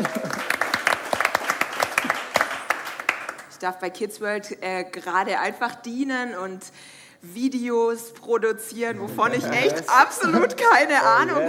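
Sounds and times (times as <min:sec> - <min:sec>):
audience applause: 0:00.0 - 0:03.5
speech: 0:03.6 - 0:11.4.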